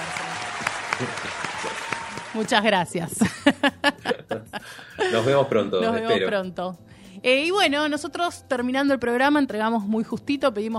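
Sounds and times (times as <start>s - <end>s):
group applauding: 0.0s - 3.0s
speech: 1.0s - 10.7s
laughter: 3.2s - 5.8s.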